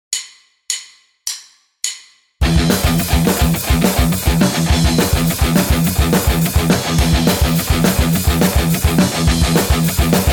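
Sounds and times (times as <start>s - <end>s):
guitar riff: 2.4s - 10.3s.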